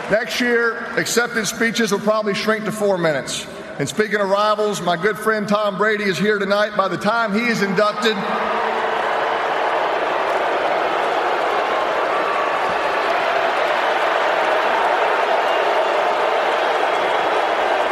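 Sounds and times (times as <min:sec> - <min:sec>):
speech: 0:00.1 - 0:08.8
Steeler fans booing: 0:07.8 - 0:17.9.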